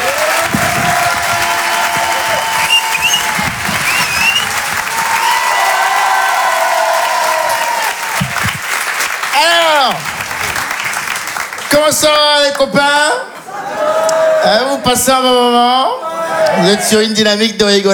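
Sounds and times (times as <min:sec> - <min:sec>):
comedy club audience applauding a comedian: 0:00.0 - 0:12.6
audience cheering: 0:00.0 - 0:17.1
speech: 0:12.0 - 0:13.2, 0:14.4 - 0:17.9
laughter: 0:12.9 - 0:14.8.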